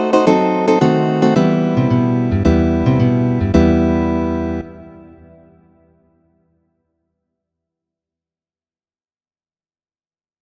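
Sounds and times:
affectionate andante piece: 0.0s - 5.6s.

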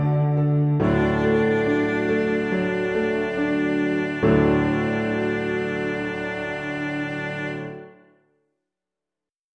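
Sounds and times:
cello and piano piece in a major key: 0.0s - 8.1s.

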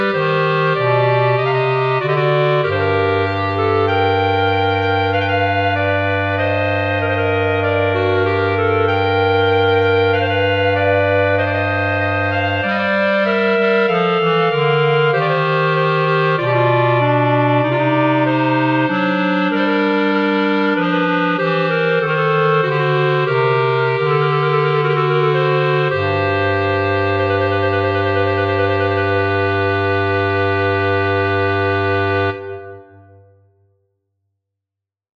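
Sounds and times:
clarinet trio playing: 0.0s - 33.2s.

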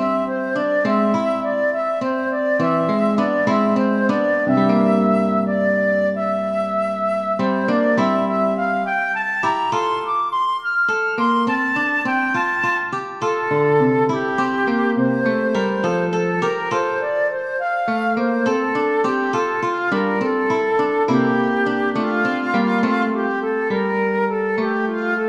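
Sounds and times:
flute: 0.0s - 25.2s
guitar: 0.0s - 25.2s.

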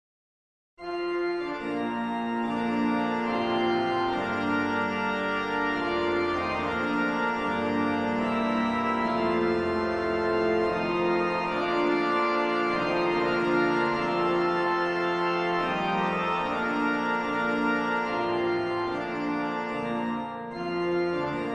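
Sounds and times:
grand organ transcription: 0.8s - 21.5s.

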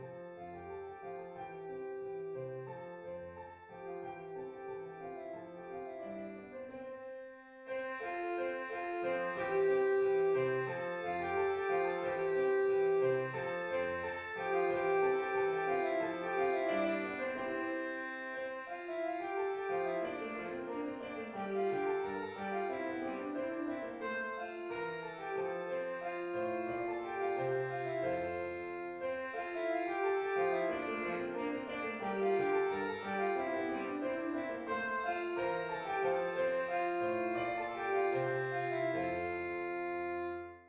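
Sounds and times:
gavotte in a major key: 1.5s - 40.6s.

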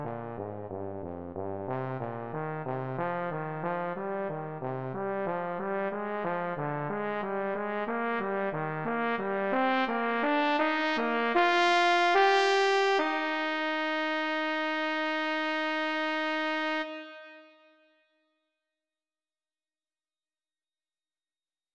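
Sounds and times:
trombone playing a slow lyrical melody: 1.4s - 17.5s.

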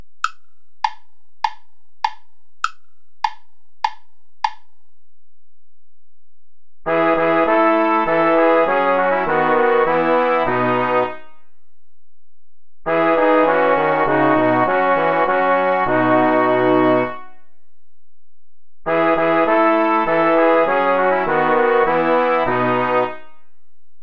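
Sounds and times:
play-along backing music without trumpet: 6.9s - 11.1s, 12.9s - 17.1s, 18.9s - 23.1s.

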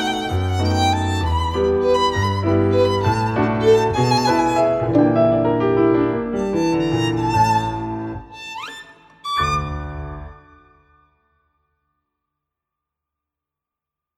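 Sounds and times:
waltz for violin and piano: 0.0s - 10.5s.

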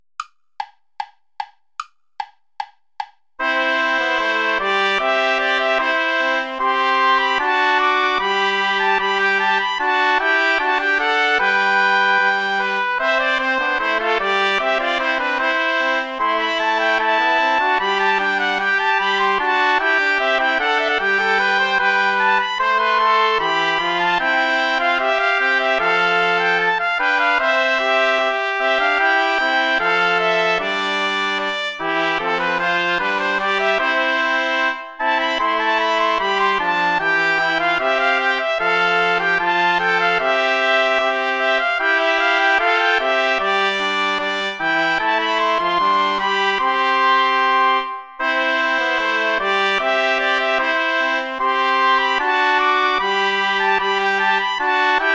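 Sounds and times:
ballet play-along music without trumpet: 2.2s - 55.1s.

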